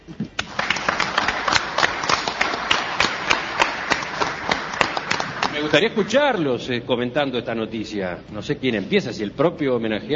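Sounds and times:
audience applause: 0:00.4 - 0:06.5
speech: 0:05.6 - 0:10.1.

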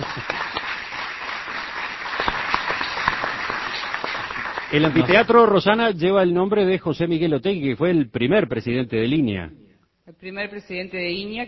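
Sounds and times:
audience applause: 0:00.0 - 0:05.6
speech: 0:04.7 - 0:11.4.

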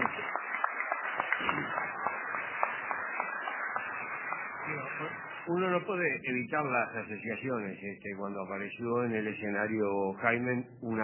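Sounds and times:
audience applause: 0:00.0 - 0:06.0
speech: 0:04.7 - 0:11.0.

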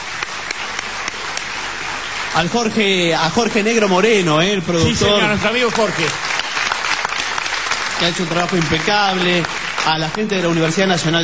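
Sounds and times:
sharp individual claps: 0:00.0 - 0:02.5, 0:05.6 - 0:10.8
audience applause at a book fair event: 0:00.0 - 0:11.2
speech: 0:02.3 - 0:06.3, 0:08.0 - 0:11.2.

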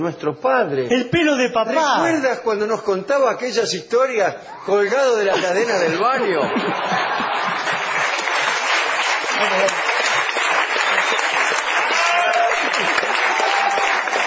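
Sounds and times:
speech: 0:00.0 - 0:07.8, 0:09.4 - 0:09.8
laughter: 0:04.7 - 0:08.6, 0:12.1 - 0:13.8
audience applause: 0:06.3 - 0:14.2.

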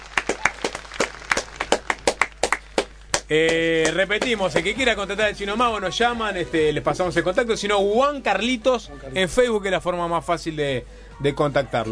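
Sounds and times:
audience applause: 0:00.0 - 0:05.2
speech: 0:03.3 - 0:11.9.

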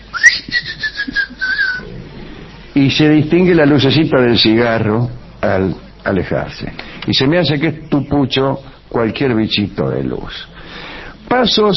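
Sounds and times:
thin whistle said to announce a mythical forest creature: 0:00.0 - 0:01.8
faint noise: 0:00.0 - 0:11.7
speech: 0:02.8 - 0:10.6, 0:11.3 - 0:11.7.

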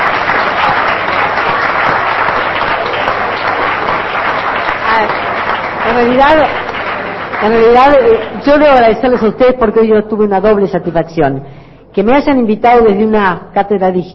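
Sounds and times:
audience applause: 0:00.0 - 0:09.0
speech: 0:06.0 - 0:06.6, 0:07.4 - 0:14.1.

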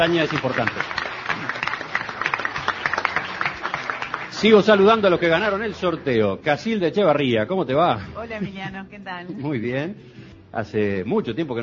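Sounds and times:
speech: 0:00.0 - 0:01.0, 0:04.4 - 0:11.6
audience applause: 0:00.0 - 0:06.1.

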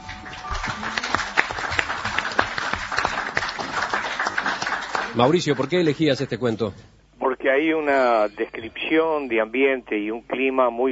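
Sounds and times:
crowd applauding: 0:00.0 - 0:06.2
speech: 0:00.7 - 0:01.2, 0:05.2 - 0:10.9.

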